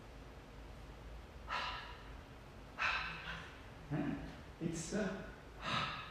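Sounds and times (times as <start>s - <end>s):
person voicing the breathy Sanskrit visarga: 1.4s - 2.2s, 2.8s - 3.7s, 5.5s - 6.0s
speech: 3.9s - 5.3s.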